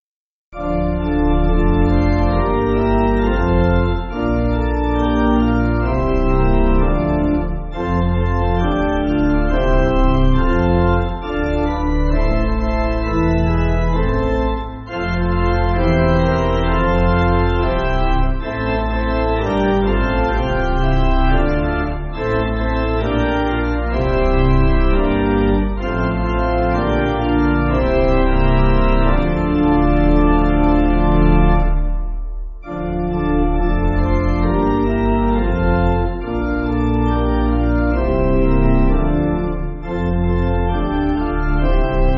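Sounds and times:
pipe organ backing for churches: 0.6s - 42.1s.

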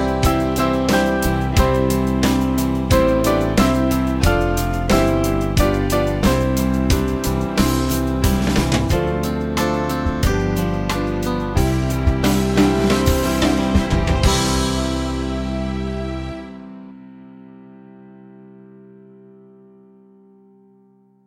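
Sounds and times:
Chinese band playing: 0.0s - 16.7s.

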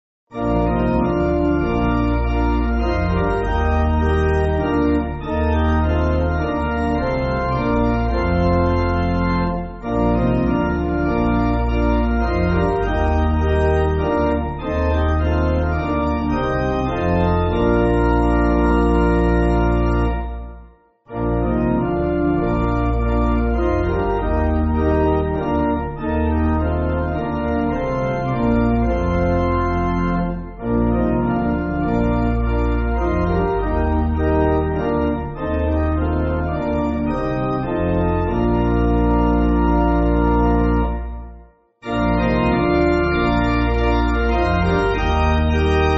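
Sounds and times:
pipe organ church music: 0.3s - 45.9s.

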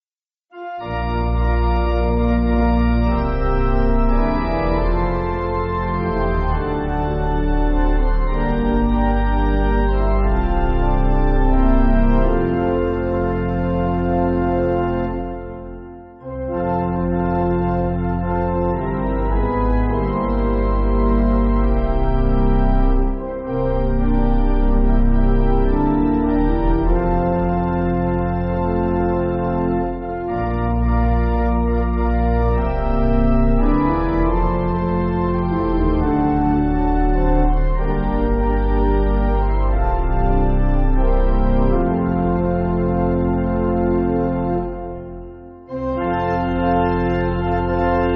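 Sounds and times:
pipe organ backing for churches: 0.5s - 48.1s.

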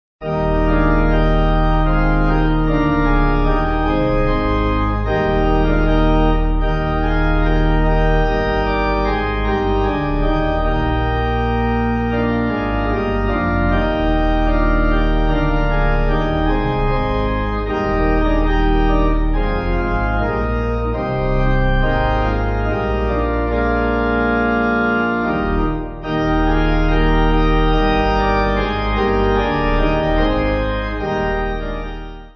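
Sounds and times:
pipe organ hymn backing: 0.2s - 32.3s.

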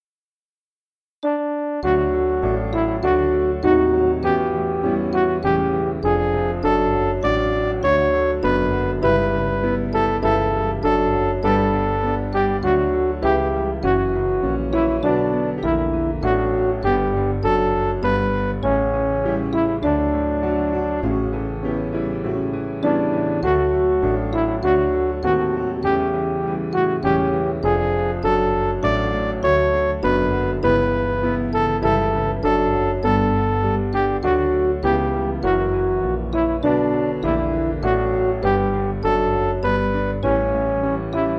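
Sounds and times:
MIDI music: 1.2s - 41.3s.

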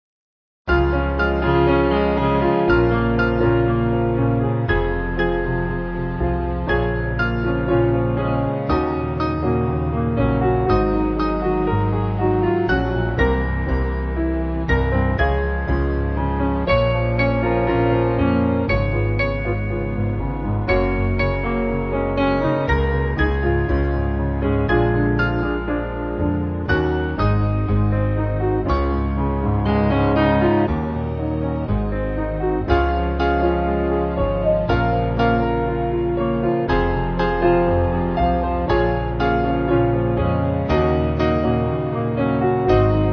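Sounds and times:
piano: 0.7s - 43.1s.

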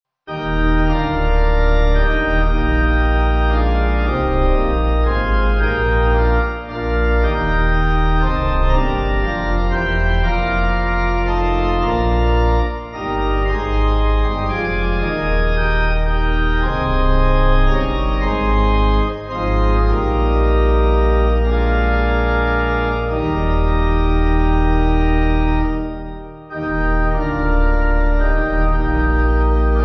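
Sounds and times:
church pipe organ backing music: 0.3s - 29.8s.

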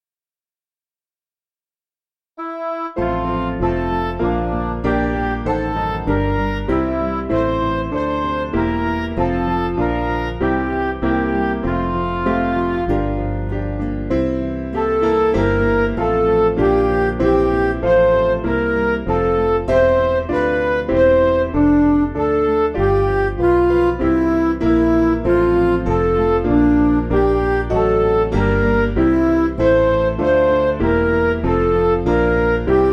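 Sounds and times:
backing music for churches: 2.7s - 32.9s.

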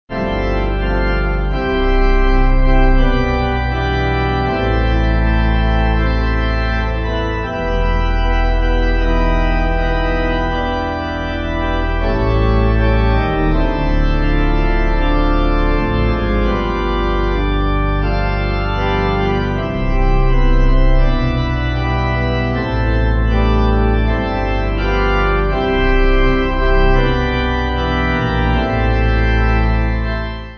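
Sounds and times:
pipe organ: 0.1s - 30.5s.

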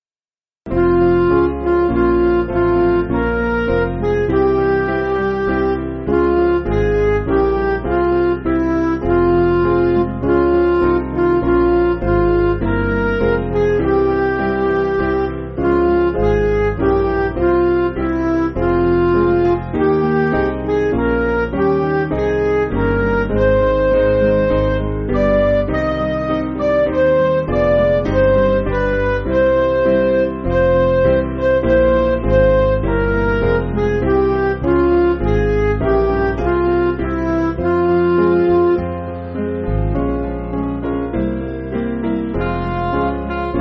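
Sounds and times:
backing music for churches: 0.7s - 43.6s.

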